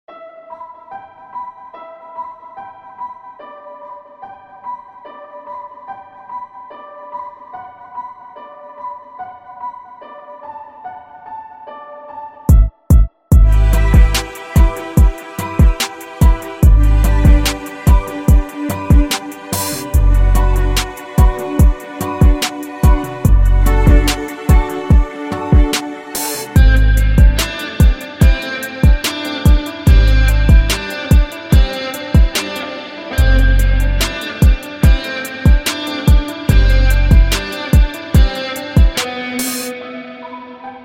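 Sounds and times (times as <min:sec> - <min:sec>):
music beat: 0:12.5 - 0:39.8.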